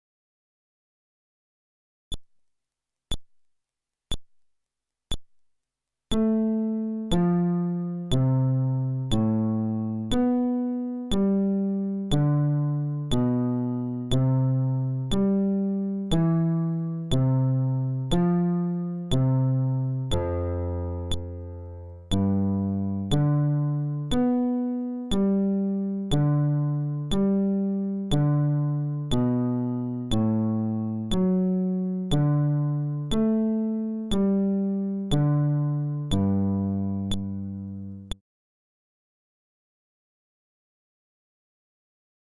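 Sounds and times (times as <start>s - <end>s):
fretless bass arpeggio: 6.2s - 38.2s.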